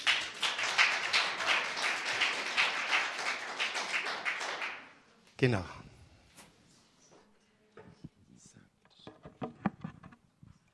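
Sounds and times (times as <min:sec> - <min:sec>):
crowd applauding: 0:00.0 - 0:05.0
speech: 0:05.4 - 0:05.8.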